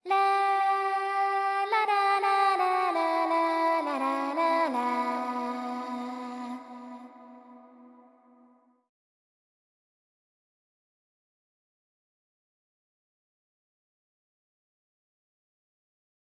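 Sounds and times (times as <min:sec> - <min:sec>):
prayer background music: 0:00.1 - 0:08.2.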